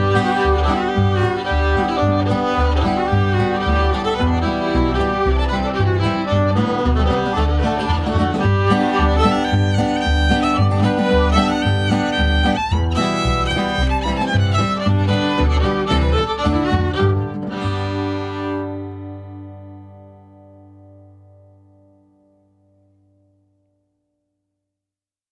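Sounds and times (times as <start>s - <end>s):
square dance music: 0.0s - 19.2s.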